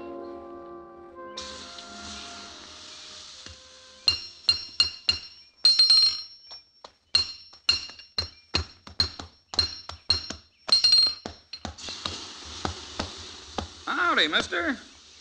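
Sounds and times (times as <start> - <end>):
soft broad hiss: 1.4 - 4.8, 11.8 - 15.1
blacksmith hammering metal: 3.4 - 6.4, 7.1 - 11.8
speech: 14.2 - 14.9.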